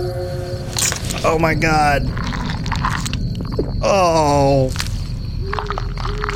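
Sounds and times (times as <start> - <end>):
groaning falling tone: 0.0 - 4.7
speech: 1.2 - 3.0, 3.8 - 4.8
crunchy wet chewing of devoured flesh: 2.0 - 6.3.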